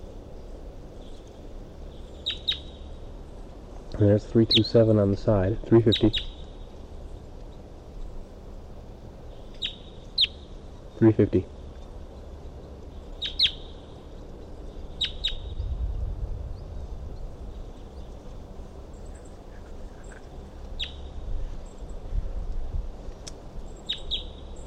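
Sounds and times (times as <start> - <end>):
low rumble: 0.0 - 24.6
wild bird calling from a tree: 0.9 - 3.1, 4.4 - 4.8, 5.8 - 8.1, 9.3 - 15.8, 16.4 - 21.9, 23.6 - 24.6
speech: 4.0 - 6.4, 11.0 - 11.6.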